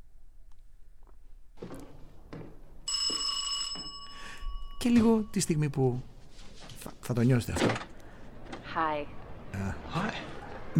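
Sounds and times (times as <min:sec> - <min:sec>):
bell ringing: 0:02.9 - 0:06.1
speech: 0:04.8 - 0:06.1, 0:07.1 - 0:07.9, 0:08.8 - 0:10.7.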